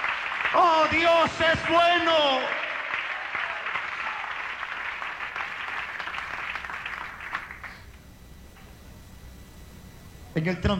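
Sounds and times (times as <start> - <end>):
audience applause: 0.0 - 7.9
speech: 0.5 - 2.6, 10.4 - 10.7.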